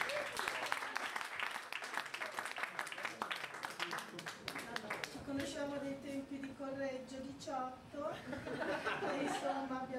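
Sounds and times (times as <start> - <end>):
audience applause: 0.0 - 5.2
speech: 5.6 - 9.9
laughter: 8.2 - 9.8.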